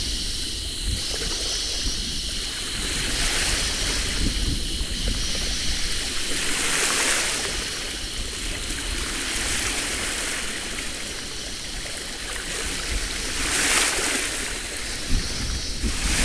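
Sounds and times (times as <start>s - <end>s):
summer seaside breeze: 0.0s - 16.2s.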